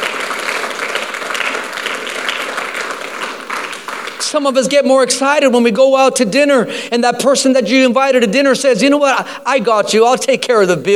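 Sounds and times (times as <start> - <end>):
audience clapping: 0.0 - 4.4
speech: 4.3 - 10.9.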